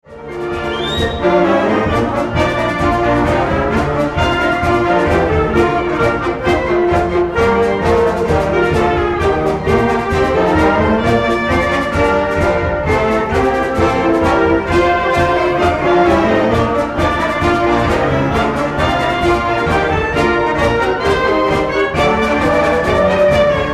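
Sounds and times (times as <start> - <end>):
victory song: 0.0 - 23.7.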